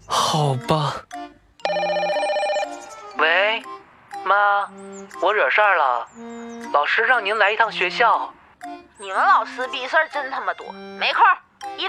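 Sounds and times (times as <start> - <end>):
speech: 0.4 - 1.1, 4.3 - 11.8
phone ringback tone on speakerphone: 1.6 - 3.1.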